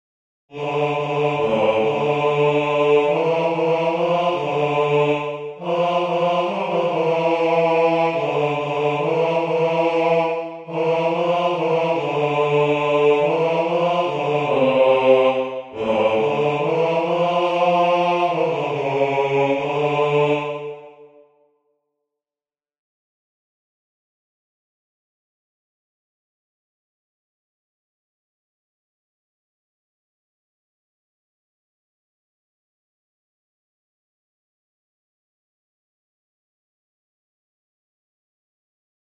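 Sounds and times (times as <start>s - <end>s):
tenor singing: 0.5s - 21.1s.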